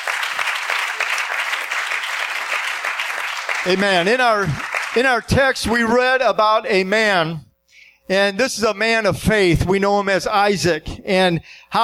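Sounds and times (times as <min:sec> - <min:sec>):
audience clapping hands: 0:00.0 - 0:05.3
speech: 0:03.6 - 0:07.5, 0:08.1 - 0:11.8.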